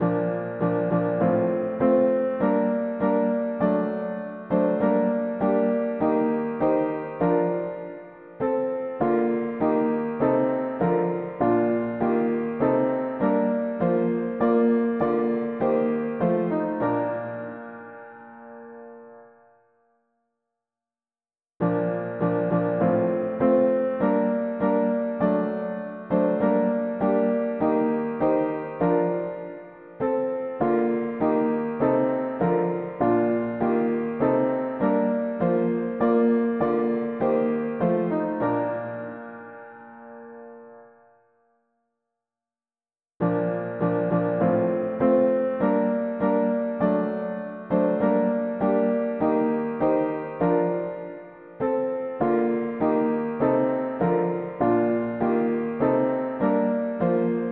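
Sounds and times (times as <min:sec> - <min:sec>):
mono piano playing hymns: 0:00.0 - 0:19.6, 0:21.6 - 0:41.2, 0:43.2 - 0:57.5.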